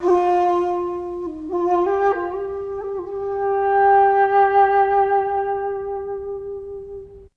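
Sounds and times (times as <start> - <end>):
flute: 0.0 - 7.3.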